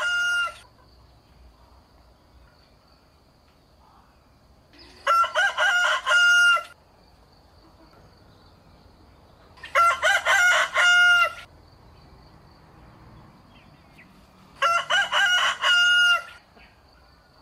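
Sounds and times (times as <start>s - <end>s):
rooster crowing: 0.0s - 0.6s, 5.0s - 6.8s, 9.6s - 11.5s, 14.5s - 16.4s.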